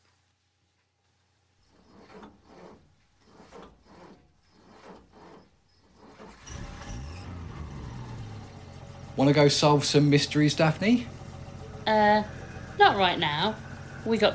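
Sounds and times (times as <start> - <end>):
rhythmic rubbing or scraping pulses: 1.6 - 14.3
van engine revving: 3.4 - 14.3
speech: 9.2 - 11.2, 13.0 - 14.3.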